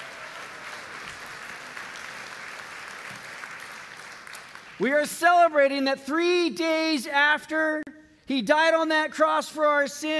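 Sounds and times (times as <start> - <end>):
audience clapping: 0.0 - 5.2
speech: 4.8 - 10.1.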